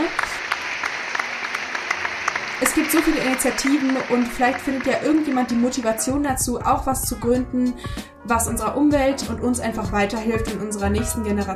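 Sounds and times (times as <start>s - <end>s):
crowd applause: 0.0s - 6.1s
speech: 2.6s - 11.5s.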